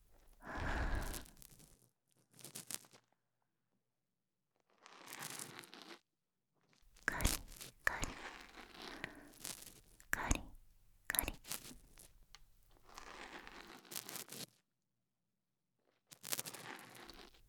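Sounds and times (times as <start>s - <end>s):
person whispering: 0.3s - 1.3s, 7.0s - 13.6s
ear cleaning: 0.4s - 1.3s, 7.0s - 13.6s.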